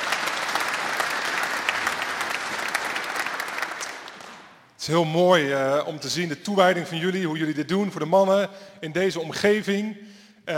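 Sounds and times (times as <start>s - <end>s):
audience applause: 0.0s - 4.6s
speech: 4.8s - 10.5s.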